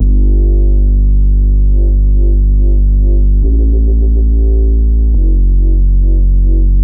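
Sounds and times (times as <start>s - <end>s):
bassline: 0.0s - 6.8s.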